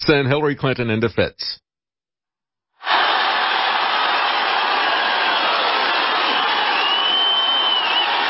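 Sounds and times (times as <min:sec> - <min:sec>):
speech: 0:00.1 - 0:01.6
massive crowd at political rally: 0:02.8 - 0:08.2.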